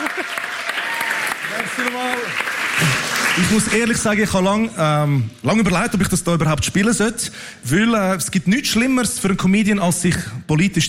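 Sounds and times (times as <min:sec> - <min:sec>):
voices cheering: 0:00.0 - 0:02.4
crowd applauding: 0:00.0 - 0:05.2
speech: 0:01.8 - 0:10.8.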